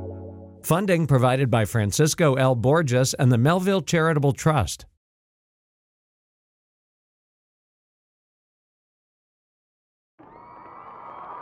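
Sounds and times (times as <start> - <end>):
speech: 0.6 - 4.9
audience cheering wildly before a show in a packed venue: 10.2 - 11.3.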